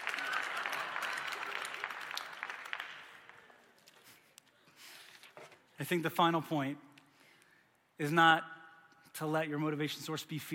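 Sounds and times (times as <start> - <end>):
audience applause: 0.0 - 3.7
speech: 5.8 - 6.9, 8.0 - 8.5, 9.2 - 10.5.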